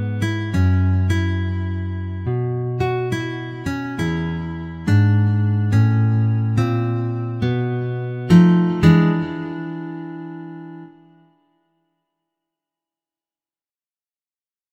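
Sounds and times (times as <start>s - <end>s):
bluesy music: 0.0s - 11.2s.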